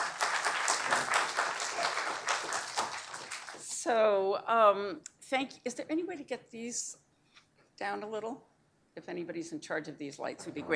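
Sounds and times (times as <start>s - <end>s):
audience applause welcoming a professor to the podium at a Cato event: 0.0s - 3.7s
speech: 3.9s - 7.0s, 7.8s - 10.7s.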